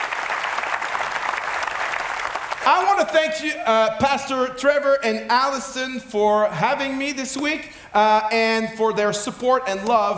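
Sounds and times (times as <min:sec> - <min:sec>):
audience applause: 0:00.0 - 0:03.6
speech: 0:02.6 - 0:10.1.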